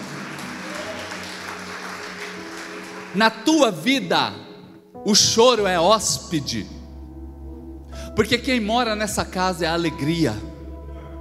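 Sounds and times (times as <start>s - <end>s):
crowd applause in a large room: 0.0s - 3.4s
speech: 3.1s - 4.4s, 5.0s - 6.8s, 8.2s - 10.5s.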